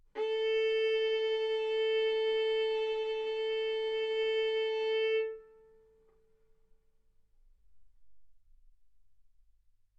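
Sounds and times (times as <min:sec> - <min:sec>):
violin bowed arco notes: 0:00.1 - 0:06.0.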